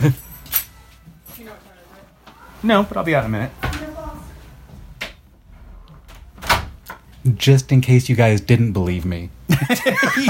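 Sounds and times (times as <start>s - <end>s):
speech: 0.0s - 0.2s, 2.6s - 3.6s, 7.2s - 10.2s
keys jingling as they are handed over: 0.0s - 1.4s
laughter: 9.5s - 10.2s.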